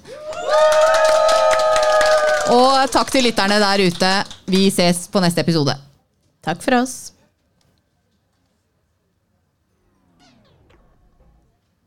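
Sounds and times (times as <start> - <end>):
loud sustained whoop: 0.0 - 2.6
audience applause: 0.0 - 4.8
speech: 2.5 - 7.2.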